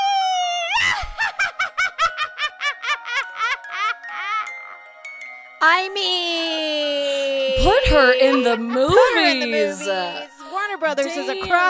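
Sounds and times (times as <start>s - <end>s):
woman's witch-like Halloween shriek and cackling: 0.1s - 4.6s, 6.8s - 10.4s
speech: 5.6s - 6.9s, 7.6s - 10.3s, 10.8s - 11.6s.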